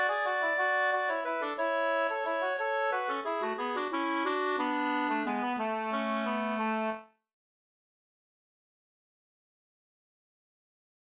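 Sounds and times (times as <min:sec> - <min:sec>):
waltz music: 0:00.0 - 0:07.0.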